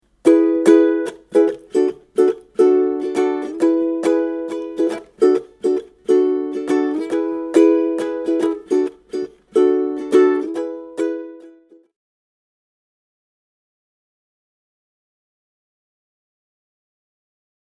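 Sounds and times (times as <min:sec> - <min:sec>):
ukulele strumming: 0:00.0 - 0:11.9.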